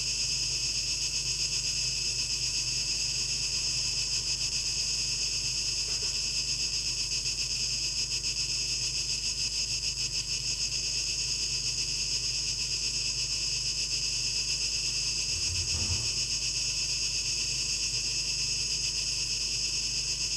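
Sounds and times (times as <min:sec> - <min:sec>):
cicadas buzzing: 0:00.0 - 0:20.3
low hum: 0:15.1 - 0:16.4
low thump: 0:15.2 - 0:16.3.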